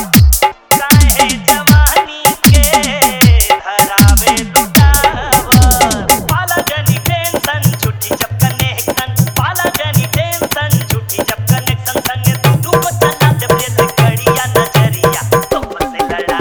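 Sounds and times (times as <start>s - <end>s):
old Bhojpuri dholak bass dance music: 0.0s - 16.3s.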